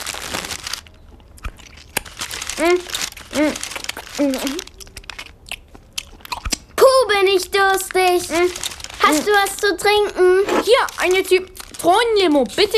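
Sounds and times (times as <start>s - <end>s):
crunching bites and chewing of cookies and liquorice snails: 0.0s - 6.8s, 7.7s - 12.6s
short voiced sounds: 2.5s - 4.8s, 6.8s - 11.5s
speech: 2.6s - 4.7s, 7.7s - 12.7s.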